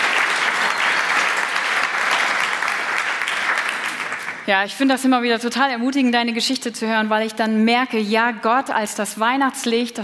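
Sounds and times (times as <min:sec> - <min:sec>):
crowd applauding: 0:00.0 - 0:04.5
speech: 0:04.5 - 0:10.0.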